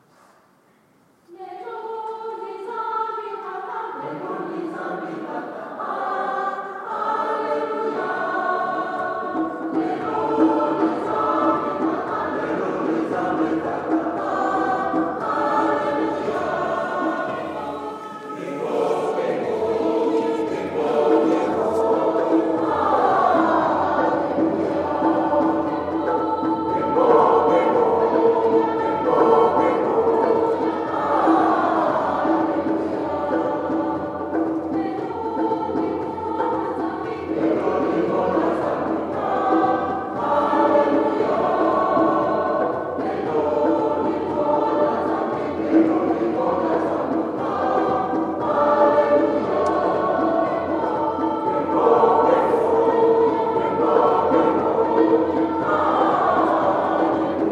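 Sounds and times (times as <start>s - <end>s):
Windhoek Catholic church choir singing: 1.3s - 57.5s.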